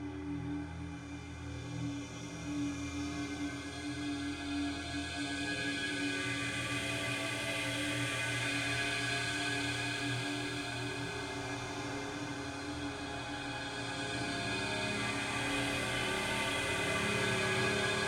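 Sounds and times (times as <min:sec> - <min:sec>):
cinematic drones: 0:00.1 - 0:18.0
evolving guitar swell: 0:09.9 - 0:18.0.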